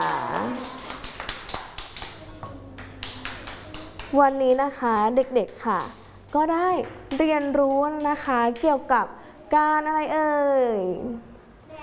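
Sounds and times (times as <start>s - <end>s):
children clapping: 0.0s - 6.0s, 7.1s - 8.7s
speech: 4.1s - 11.3s.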